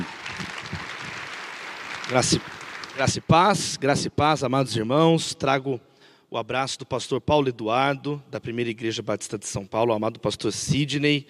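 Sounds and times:
audience applauding: 0:00.0 - 0:03.6
speech: 0:02.1 - 0:11.2.

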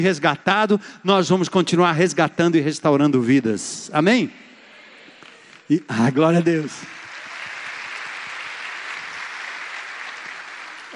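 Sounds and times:
speech: 0:00.0 - 0:04.4, 0:05.7 - 0:07.0
audience applause: 0:05.2 - 0:10.9.

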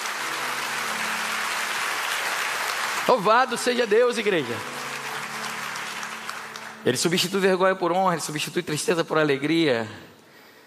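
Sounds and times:
audience applause: 0:00.0 - 0:07.4
speech: 0:03.1 - 0:04.8, 0:06.8 - 0:10.1.

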